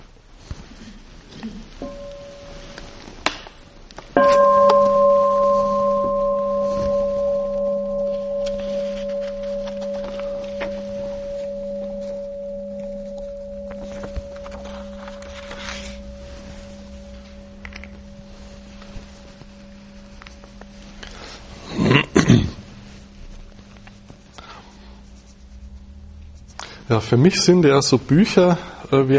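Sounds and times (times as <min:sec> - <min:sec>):
bell ringing: 0:01.8 - 0:03.1, 0:04.1 - 0:22.0
speech: 0:27.0 - 0:29.1.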